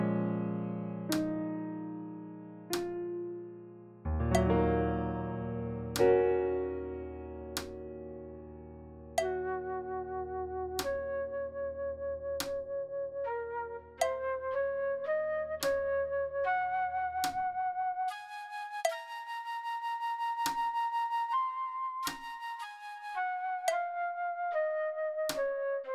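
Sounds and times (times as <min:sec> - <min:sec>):
slow piano practice playback: 0:00.0 - 0:25.9
slow flute practice playback: 0:09.2 - 0:25.9.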